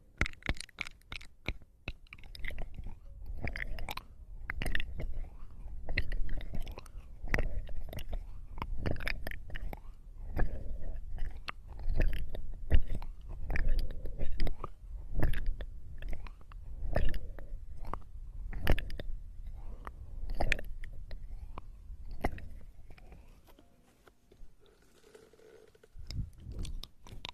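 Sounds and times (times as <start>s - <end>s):
wet mouth clicks and smacks from ear eating: 0.0s - 23.3s, 25.1s - 27.3s
soft rubbing from ear massage: 21.5s - 26.3s.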